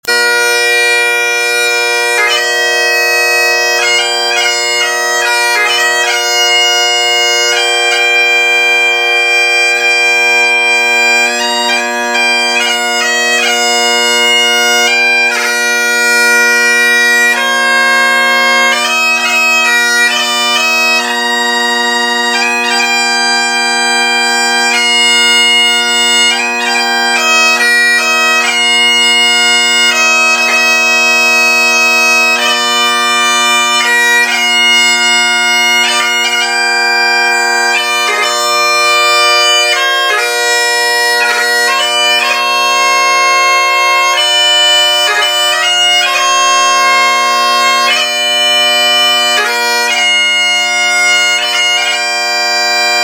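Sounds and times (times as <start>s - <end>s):
bagpipes: 0.0s - 53.0s.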